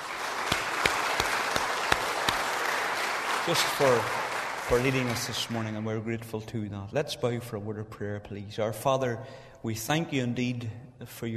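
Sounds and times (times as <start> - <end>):
audience applause: 0.0 - 5.8
speech: 3.4 - 11.3.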